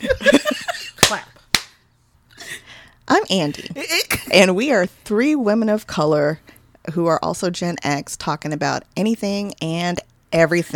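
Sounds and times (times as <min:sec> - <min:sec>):
laughter: 0:00.0 - 0:01.0
hand claps for editing sync: 0:01.0 - 0:01.8
speech: 0:03.3 - 0:10.7.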